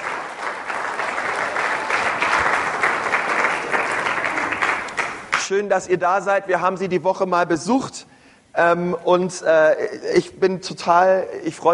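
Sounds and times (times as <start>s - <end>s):
audience applause: 0.0s - 5.4s
speech: 5.5s - 11.7s.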